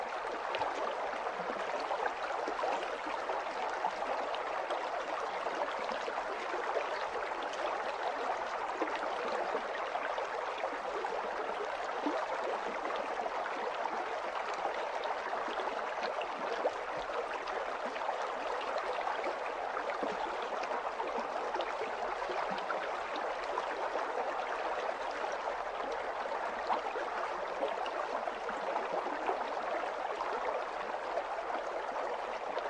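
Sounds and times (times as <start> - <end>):
gentle water stream: 0.0 - 32.6.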